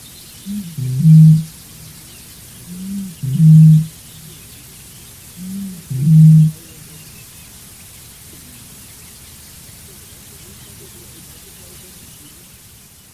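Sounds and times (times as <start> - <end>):
quiet hiss: 0.0 - 13.1
bird giving deep low hoots: 0.5 - 1.6, 2.7 - 3.9, 5.4 - 6.7.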